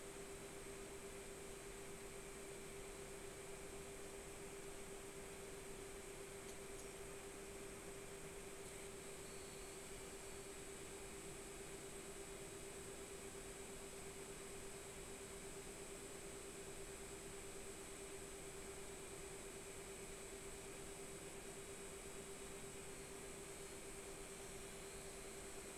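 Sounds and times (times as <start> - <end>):
R9 280X graphics card fan noise: 0.0 - 25.7.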